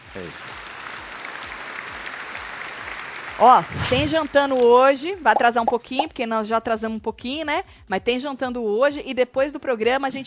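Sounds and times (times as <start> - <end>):
applause: 0.0 - 4.6
speech: 0.2 - 0.6, 3.4 - 10.2.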